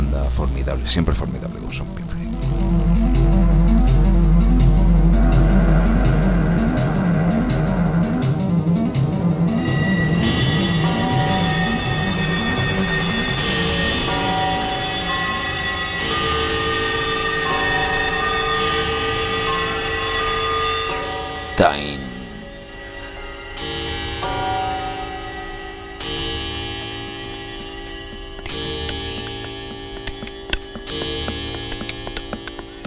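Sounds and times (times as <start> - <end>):
speech: 0.6 - 3.2
clocks ticking: 1.0 - 32.8
clock bells chiming at the Puerta del Sol: 9.4 - 32.8.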